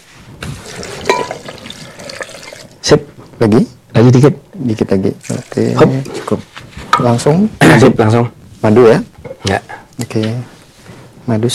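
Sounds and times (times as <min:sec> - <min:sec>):
water poured into a blender over fruit: 0:00.5 - 0:02.8, 0:05.2 - 0:05.7
speech: 0:02.9 - 0:10.5, 0:11.3 - 0:11.5.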